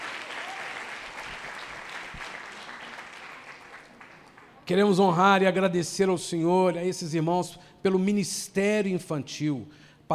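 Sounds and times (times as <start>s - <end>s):
congregation applauding at a church service: 0.0s - 4.8s
speech: 4.7s - 10.1s.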